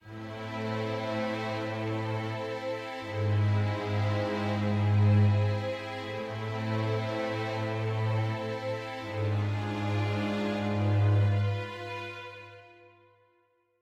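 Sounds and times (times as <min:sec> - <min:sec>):
sad music: 0:00.0 - 0:13.4.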